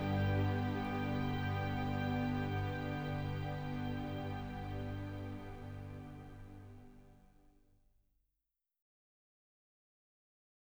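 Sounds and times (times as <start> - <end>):
orchestra playing: 0.0 - 7.1.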